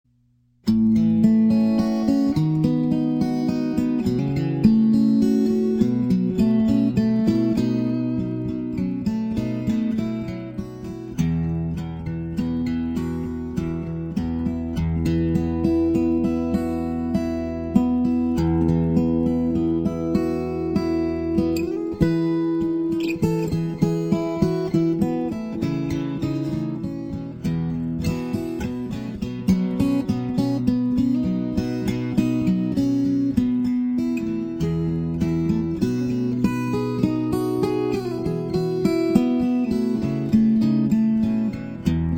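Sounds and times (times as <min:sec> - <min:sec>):
Hawaiian slack key guitar: 0:00.6 - 0:42.1.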